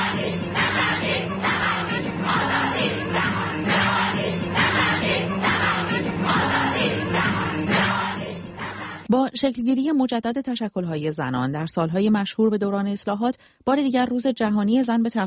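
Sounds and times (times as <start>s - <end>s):
crowd of women shouting in protest: 0.0s - 9.1s
speech: 9.1s - 15.2s.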